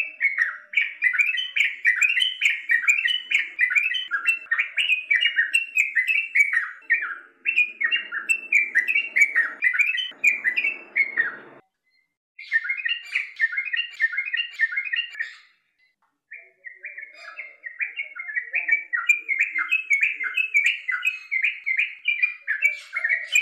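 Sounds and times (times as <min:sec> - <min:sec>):
bird chirping: 0:00.0 - 0:23.4.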